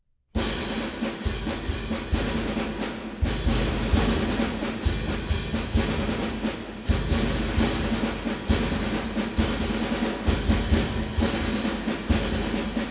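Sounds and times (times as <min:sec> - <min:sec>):
drum: 0:00.4 - 0:12.9.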